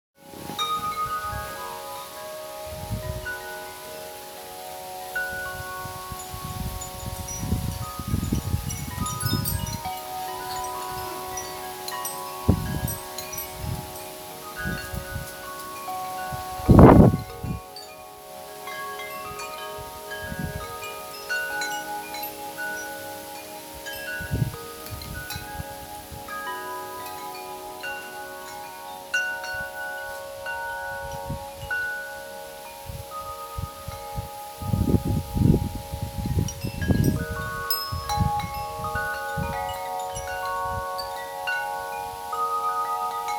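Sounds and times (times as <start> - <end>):
bells ringing: 0.2 - 43.3.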